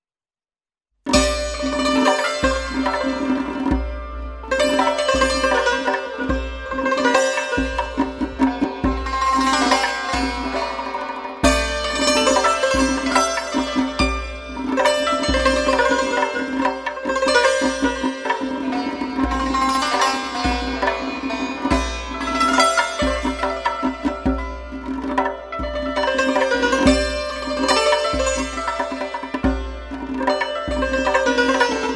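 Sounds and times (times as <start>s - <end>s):
santur: 1.1s - 31.9s
zarb: 1.1s - 31.9s.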